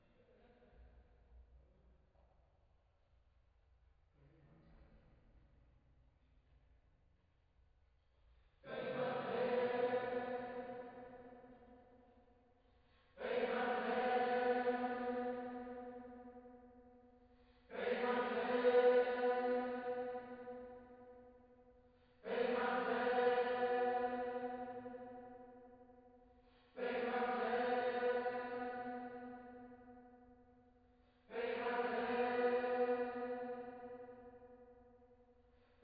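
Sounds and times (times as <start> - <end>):
choir singing: 8.6 - 11.8, 13.2 - 16.7, 17.7 - 21.2, 22.2 - 25.6, 26.8 - 30.2, 31.3 - 34.2.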